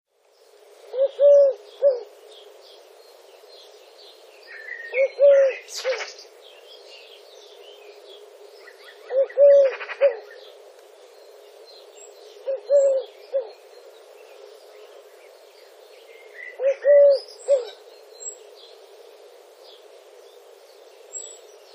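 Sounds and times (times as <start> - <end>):
Streptopelia decaocto Eurasian collared dove cooing: 0.8 - 2.2, 4.5 - 6.2, 8.6 - 10.6, 12.2 - 13.7, 16.3 - 17.8.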